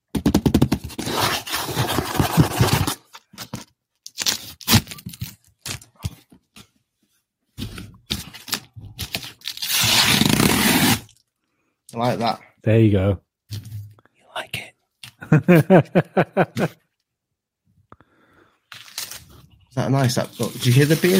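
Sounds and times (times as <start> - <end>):
sellotape tearing off a box by hand: 0.7 - 3.1, 4.1 - 5.8, 8.1 - 11.2
speech: 12.0 - 13.2, 15.3 - 16.8, 19.8 - 21.1
laughter: 15.2 - 16.8.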